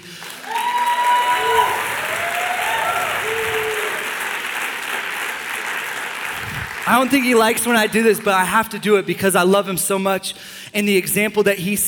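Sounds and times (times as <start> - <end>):
audience applause: 0.0 - 8.3
speech: 6.9 - 11.8.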